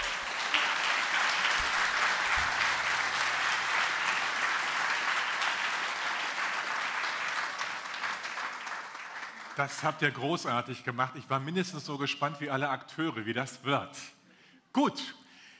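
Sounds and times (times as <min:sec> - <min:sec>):
audience applause: 0:00.0 - 0:09.8
speech: 0:09.6 - 0:14.2, 0:14.8 - 0:15.2.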